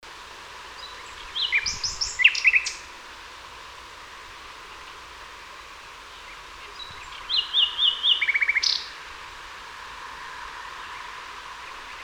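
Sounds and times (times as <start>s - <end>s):
common nightingale Luscinia megarhynchos singing: 0.7s - 2.9s, 4.6s - 9.0s.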